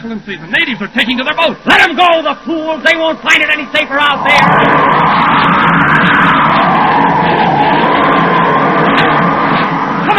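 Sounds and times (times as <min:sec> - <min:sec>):
speech: 0:00.0 - 0:06.2
howling storm wind: 0:03.6 - 0:10.1.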